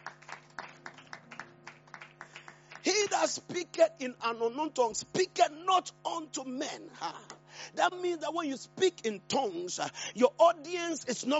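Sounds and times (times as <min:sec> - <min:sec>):
audience clapping: 0:00.0 - 0:03.2
speech: 0:03.2 - 0:11.3.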